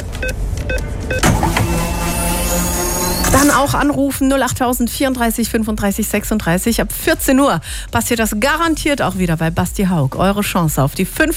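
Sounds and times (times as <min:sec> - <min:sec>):
speech: 0:00.2 - 0:11.3
quick bright electronic blips of a fuel card top-up sound effect: 0:00.7 - 0:03.9.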